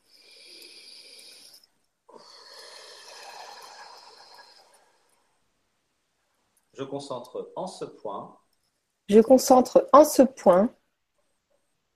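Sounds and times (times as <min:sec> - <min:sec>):
person taking a deep breath: 0:00.0 - 0:05.5
speech: 0:06.8 - 0:08.4, 0:09.1 - 0:10.8.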